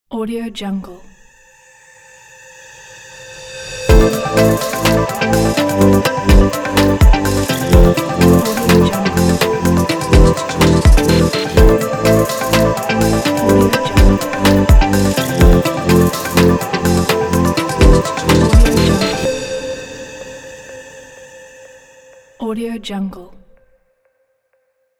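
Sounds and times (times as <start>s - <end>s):
Dubai pop music logo: 3.9s - 21.5s.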